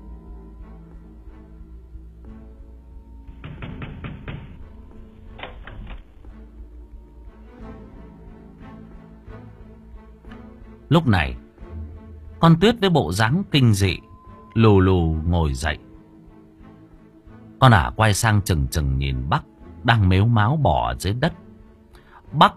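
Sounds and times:
frightened man pounding hard on a door that will not open: 3.3s - 4.7s
speech: 10.9s - 11.4s, 12.4s - 15.9s, 17.6s - 21.4s, 22.3s - 22.5s.

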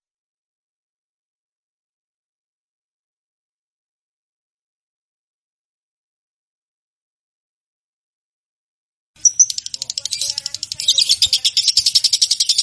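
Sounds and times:
champion lovebird chirping: 9.2s - 12.6s.

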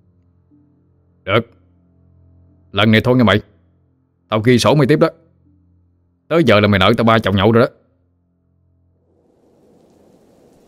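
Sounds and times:
speech: 1.2s - 1.6s, 2.8s - 3.5s, 4.3s - 5.2s, 6.3s - 7.8s
heavy rain: 9.1s - 10.6s
sea roaring: 9.1s - 10.6s
thunderstorm: 9.1s - 10.6s.

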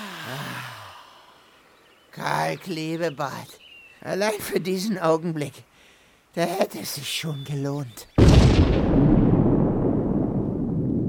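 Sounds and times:
speech: 2.2s - 5.7s, 6.3s - 8.7s
explosion: 8.2s - 11.0s.

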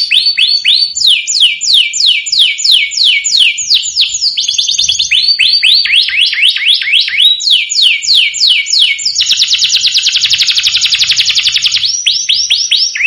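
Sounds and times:
domestic canary song: 0.0s - 13.0s.

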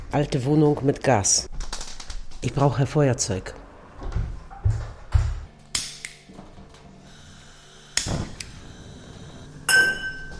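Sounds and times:
speech: 0.2s - 1.5s, 2.4s - 3.6s
old metal pots clinking and clattering as handled: 9.7s - 10.3s.

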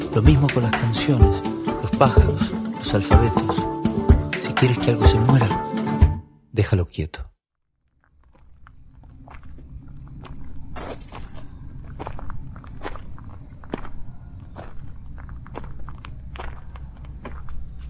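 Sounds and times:
speech: 0.1s - 3.7s, 4.6s - 5.7s, 6.6s - 7.3s
unhurried footsteps crunching on a gritty surface: 8.1s - 17.8s.

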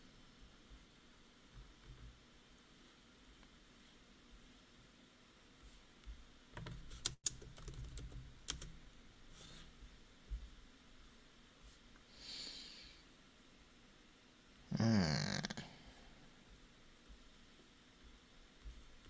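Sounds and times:
low steady hiss: 0.0s - 19.0s
typing on a computer keyboard: 6.6s - 8.8s.

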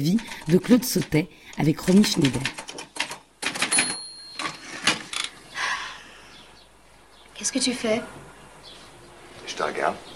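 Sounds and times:
speech: 0.0s - 2.6s, 7.4s - 8.2s, 9.5s - 10.1s
woman typing on a typewriter in a film scene: 0.0s - 5.3s.

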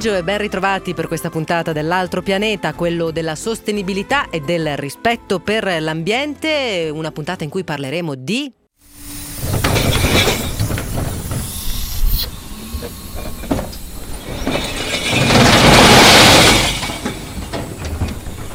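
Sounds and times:
speech: 0.0s - 8.6s
collection truck mechanical rumble: 8.9s - 18.5s
glass bottles crashing into a recycling collection truck: 9.4s - 11.5s, 13.2s - 18.5s.

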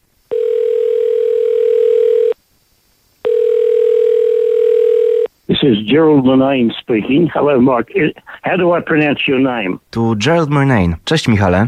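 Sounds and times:
landline telephone call tone beeps: 0.3s - 2.4s, 3.3s - 5.3s
speech: 5.6s - 11.6s.

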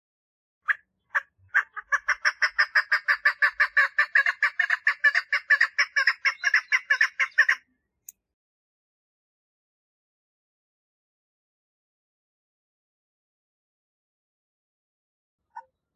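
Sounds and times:
partridge song: 0.7s - 7.6s.

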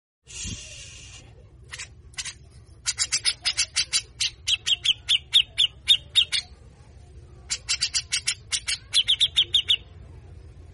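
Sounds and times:
grey-cheeked bulbul rasping buzzy calls: 1.7s - 6.5s, 7.5s - 9.9s.

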